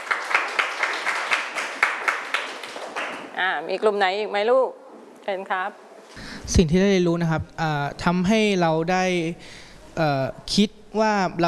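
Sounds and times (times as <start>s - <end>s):
classroom applause for a group: 0.0s - 3.4s
speech: 3.4s - 11.4s.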